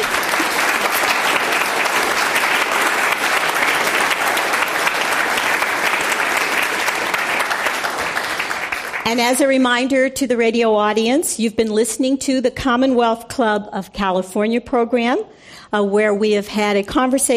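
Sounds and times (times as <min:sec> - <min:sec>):
audience applause at a Commonwealth Club of California panel event: 0:00.0 - 0:09.2
speech: 0:09.1 - 0:17.3.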